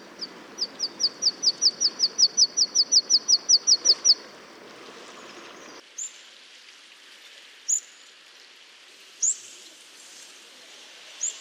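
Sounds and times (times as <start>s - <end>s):
bird calling: 0.0s - 5.8s
background hiss: 0.0s - 11.4s.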